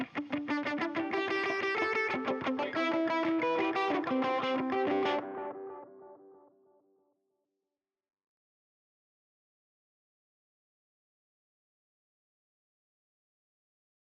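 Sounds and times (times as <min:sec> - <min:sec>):
guitar drop: 0:00.0 - 0:06.2.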